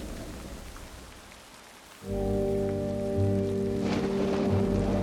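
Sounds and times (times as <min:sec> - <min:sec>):
adagio nature music: 0:02.1 - 0:05.0.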